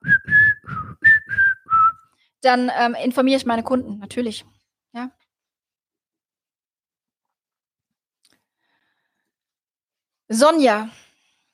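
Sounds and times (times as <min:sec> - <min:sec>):
person whistling an imitation of a bird call: 0:00.0 - 0:02.1
speech: 0:02.4 - 0:05.2, 0:10.3 - 0:11.0.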